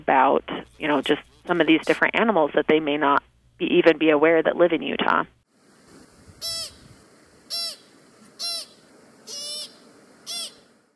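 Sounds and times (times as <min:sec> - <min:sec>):
speech: 0:00.0 - 0:05.4
soft background hiss: 0:00.0 - 0:10.9
American Pika giving short high calls: 0:06.4 - 0:06.9, 0:07.5 - 0:10.7.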